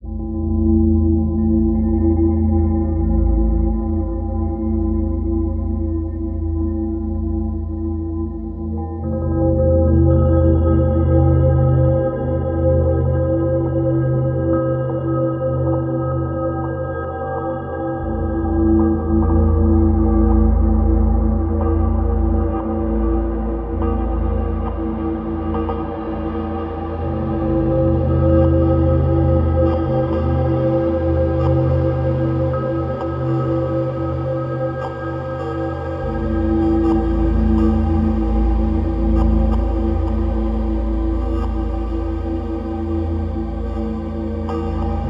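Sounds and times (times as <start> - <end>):
ambient music: 0.0 - 45.0.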